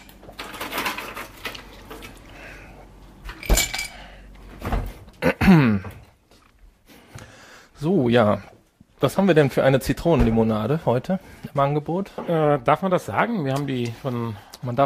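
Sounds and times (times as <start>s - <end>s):
ice cube machine dispensing ice: 0.3s - 2.1s
speech: 5.5s - 5.9s, 8.1s - 14.8s.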